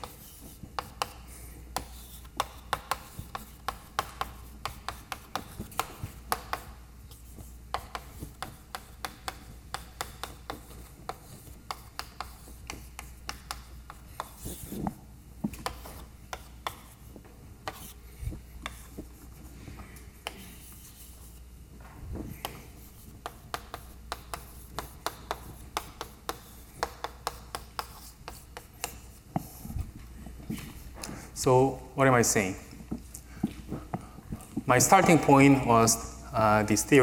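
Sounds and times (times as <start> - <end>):
writing on a board during a lecture: 0.0 - 19.5, 20.2 - 21.4, 22.2 - 29.9
speech: 31.4 - 32.6, 34.7 - 37.0.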